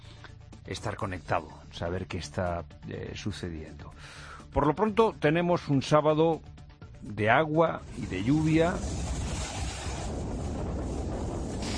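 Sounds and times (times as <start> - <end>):
speech: 0.7 - 9.2
strong wind blowing: 7.8 - 11.7.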